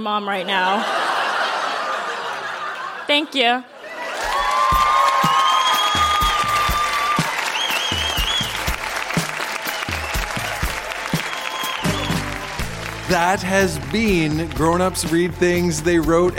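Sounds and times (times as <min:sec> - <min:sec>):
speech: 0:00.0 - 0:01.0, 0:03.1 - 0:04.3, 0:13.1 - 0:16.3
laughter: 0:00.4 - 0:04.5
audience applause: 0:03.9 - 0:15.4.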